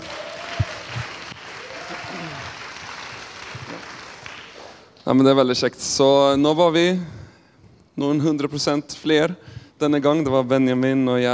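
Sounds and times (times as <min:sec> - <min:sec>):
audience applause welcoming a guest: 0:00.0 - 0:05.0
speech: 0:05.0 - 0:07.2, 0:08.0 - 0:11.3.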